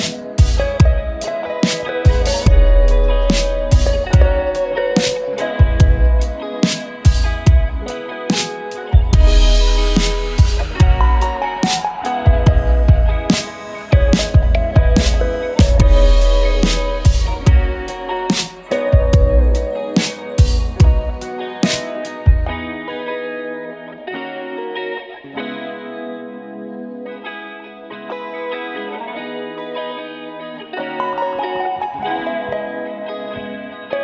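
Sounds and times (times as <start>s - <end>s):
RB hip hop beat: 0.0s - 23.4s, 30.7s - 34.0s.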